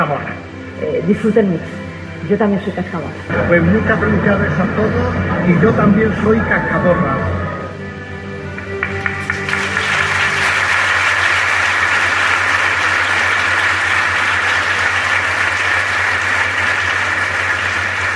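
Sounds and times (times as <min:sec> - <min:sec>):
speech: 0:00.0 - 0:07.4
audience applause: 0:08.5 - 0:18.1.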